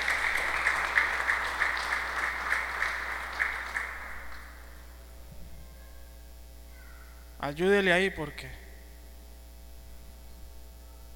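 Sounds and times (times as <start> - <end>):
loud applause from a crowd: 0.0 - 4.8
speech: 7.4 - 8.6.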